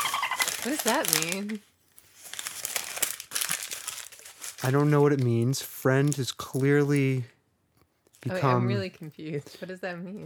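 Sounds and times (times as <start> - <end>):
paper letter crinkling as it is unfolded: 0.0 - 7.1
speech: 0.6 - 1.7, 4.6 - 7.3, 8.2 - 10.2.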